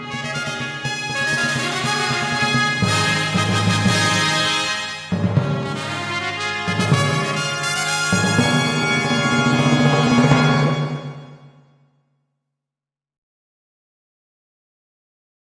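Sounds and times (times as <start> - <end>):
fanfare for seven trumpets: 0.0 - 11.6.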